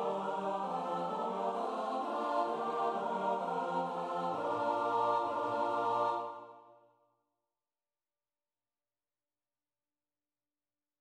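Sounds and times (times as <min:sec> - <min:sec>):
SATB choir singing: 0:00.0 - 0:06.8.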